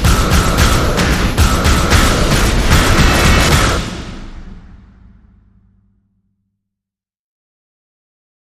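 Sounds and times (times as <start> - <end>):
drums: 0.0 - 6.2.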